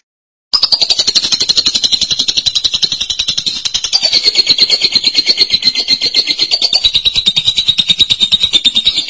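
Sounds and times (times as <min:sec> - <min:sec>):
lovebird chattering song: 0:00.6 - 0:09.0.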